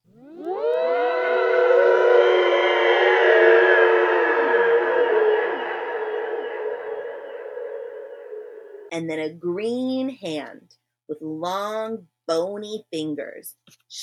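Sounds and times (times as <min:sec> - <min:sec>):
loud wailing cry of terror: 0:00.2 - 0:08.9
speech: 0:09.0 - 0:14.0.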